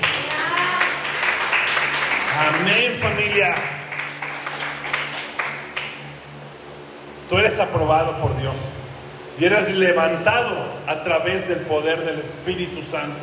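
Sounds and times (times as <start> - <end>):
audience applause: 0.0 - 6.0
speech: 2.4 - 3.8, 7.3 - 8.8, 9.4 - 13.2.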